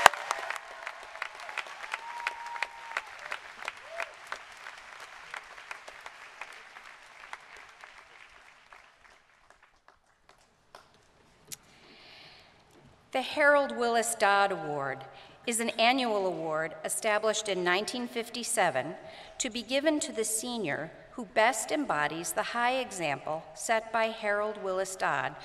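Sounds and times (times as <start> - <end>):
audience round of applause: 0.0 - 10.5
speech: 13.2 - 25.4.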